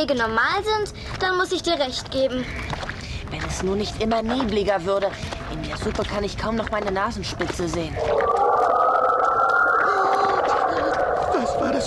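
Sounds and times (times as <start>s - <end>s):
speech: 0.0s - 8.4s
eerie howling of the wind: 7.9s - 11.8s.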